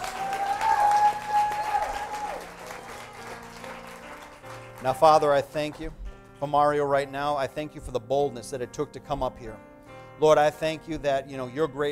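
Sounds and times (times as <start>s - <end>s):
crowd hand clapping applause: 0.0s - 5.9s
speech: 4.8s - 11.8s.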